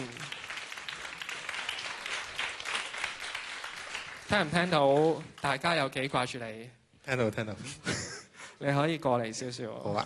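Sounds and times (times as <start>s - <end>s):
audience applause welcoming a returning university music student onto a Hong Kong stage: 0.0s - 5.6s
speech: 4.3s - 8.0s, 8.6s - 10.0s.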